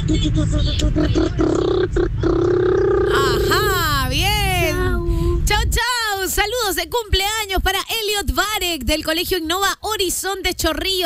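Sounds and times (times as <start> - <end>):
speech: 0.1 - 2.7, 5.6 - 11.0
child imitating a motorbike engine: 0.8 - 5.4.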